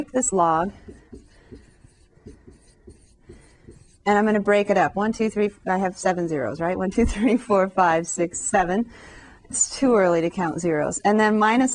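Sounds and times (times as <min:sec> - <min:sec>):
speech: 0:00.0 - 0:01.0, 0:04.0 - 0:11.7
marker whiteboard being wiped clean: 0:00.7 - 0:04.0.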